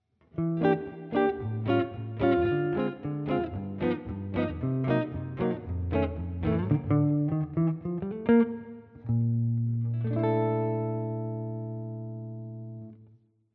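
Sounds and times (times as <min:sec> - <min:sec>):
neck position chords: 0:00.4 - 0:12.9.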